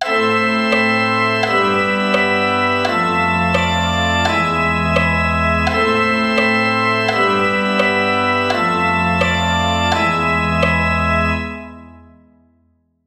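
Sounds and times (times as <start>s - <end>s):
passacaglia in A minor: 0.0s - 11.9s.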